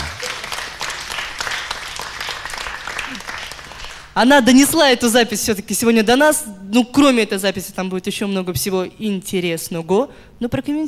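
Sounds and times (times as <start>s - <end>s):
faint murmur of voices: 0.0s - 0.4s
audience applauding: 0.0s - 4.2s
speech: 4.2s - 10.8s.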